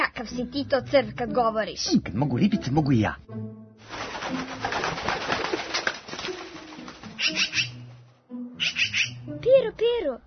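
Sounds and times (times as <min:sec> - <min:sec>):
speech: 0:00.2 - 0:05.2, 0:07.2 - 0:07.7, 0:08.6 - 0:10.2
magpie flapping wings: 0:03.8 - 0:08.0
magpie scratchy chatter and harsh calls: 0:07.0 - 0:07.8, 0:08.6 - 0:09.3.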